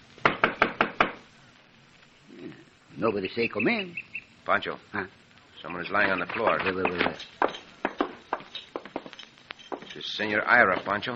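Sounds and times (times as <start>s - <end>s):
knocking on a cabin door: 0.2s - 1.2s
speech: 3.0s - 7.5s, 10.2s - 11.1s.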